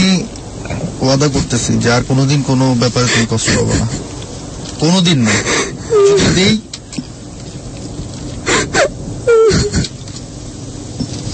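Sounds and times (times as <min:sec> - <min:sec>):
speech: 0:01.0 - 0:04.1, 0:04.8 - 0:06.7
person crying: 0:05.2 - 0:06.6, 0:08.5 - 0:10.0.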